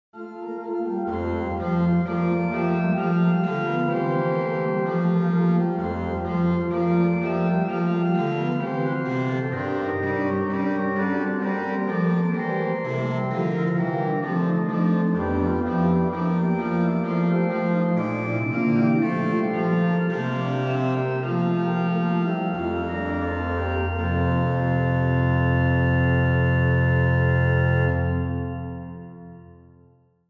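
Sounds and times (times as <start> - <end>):
organ music in Souvigny: 0.2 - 29.8.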